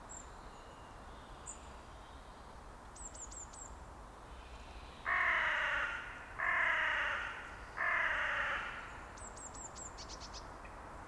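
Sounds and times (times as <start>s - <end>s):
carrion crow Corvus corone cawing: 5.1s - 9.0s.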